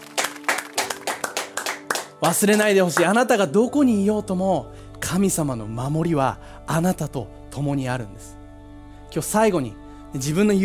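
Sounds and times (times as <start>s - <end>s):
audience clapping in a brisk rhythm: 0.0s - 3.2s
speech: 2.2s - 8.4s, 9.1s - 10.6s.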